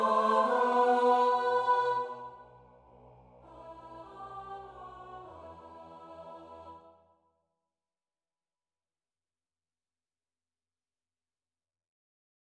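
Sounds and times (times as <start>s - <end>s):
soprano section of a choir singing: 0.0s - 2.6s, 3.4s - 7.0s.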